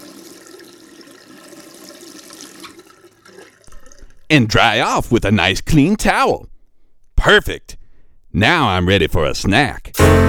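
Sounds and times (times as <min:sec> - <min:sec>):
running tap water rinsing soap off hands: 0:00.0 - 0:05.3
speech: 0:04.3 - 0:06.5, 0:07.2 - 0:07.7, 0:08.4 - 0:10.2.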